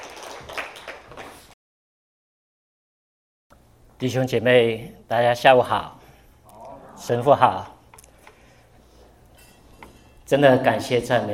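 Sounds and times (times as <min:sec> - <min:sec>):
audience applause: 0:00.0 - 0:01.5
speech: 0:04.0 - 0:06.0, 0:07.0 - 0:07.8, 0:10.3 - 0:11.3.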